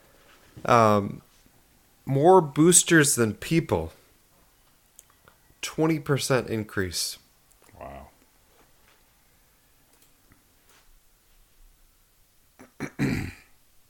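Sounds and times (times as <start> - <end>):
speech: 0.6 - 1.2, 2.1 - 4.0, 5.6 - 7.2
person clearing throat: 12.6 - 13.5.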